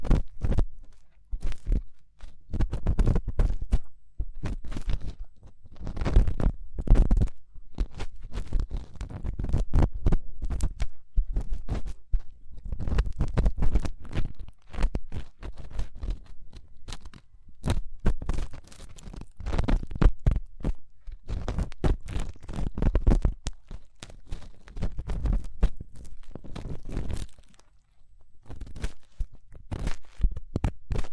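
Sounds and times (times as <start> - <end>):
fast intense ear cleaning crunching and scratching: 0.0 - 31.1.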